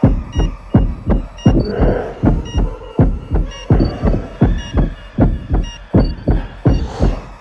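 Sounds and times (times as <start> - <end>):
game interface low health warning loop: 0.0 - 7.3.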